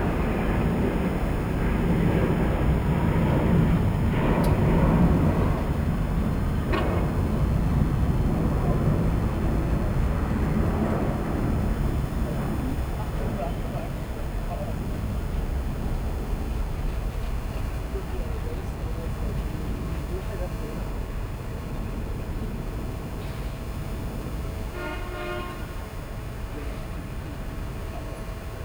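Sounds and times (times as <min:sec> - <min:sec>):
rooftop ambience in Boudha, Kathmandu, Nepal: 0:00.0 - 0:28.6.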